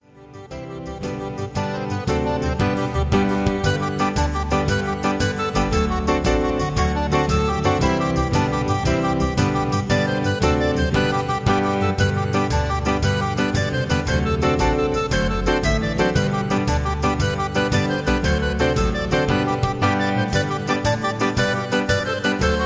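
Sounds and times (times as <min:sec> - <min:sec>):
traditional Irish songs karaoke track: 0:00.6 - 0:22.6.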